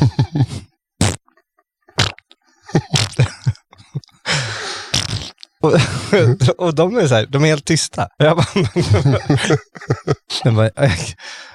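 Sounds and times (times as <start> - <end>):
laughter: 0.0 - 0.6, 2.7 - 4.6, 5.6 - 6.6, 8.4 - 11.2
voice imitating a built-in whoopee cushion fart: 4.9 - 5.6
speech: 5.6 - 11.5.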